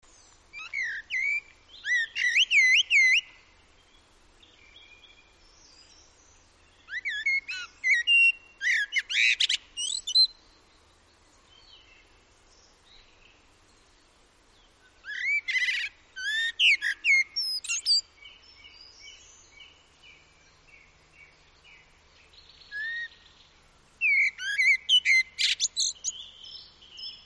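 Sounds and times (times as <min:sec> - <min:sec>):
common blackbird singing: 0:00.5 - 0:03.4, 0:04.4 - 0:10.4, 0:14.6 - 0:27.2.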